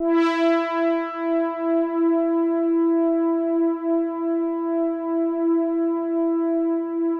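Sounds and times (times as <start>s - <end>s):
Oberheim synthesizers: 0.0s - 7.1s.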